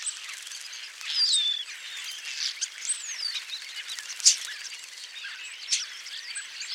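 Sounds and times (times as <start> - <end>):
European starling flock chattering: 0.1 - 6.7.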